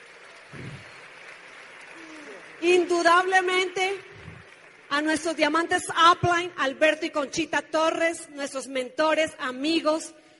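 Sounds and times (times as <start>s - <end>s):
audience applause: 0.0s - 5.6s
speech: 2.6s - 4.0s, 4.9s - 10.2s.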